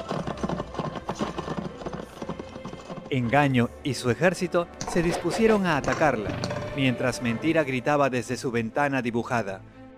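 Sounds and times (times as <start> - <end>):
mare galloping hooves: 0.0 - 3.7, 4.8 - 7.0
speech: 3.1 - 9.7.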